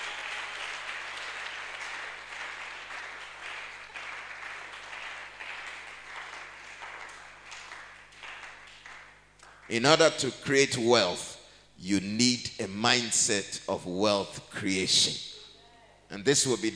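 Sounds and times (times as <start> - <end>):
audience clapping and applauding: 0.0 - 10.2
speech: 9.7 - 15.3, 16.1 - 16.7.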